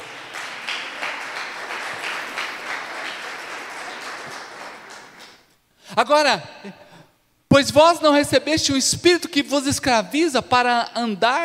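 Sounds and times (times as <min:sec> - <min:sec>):
audience applause: 0:00.0 - 0:05.5
speech: 0:06.0 - 0:06.8, 0:07.5 - 0:11.4.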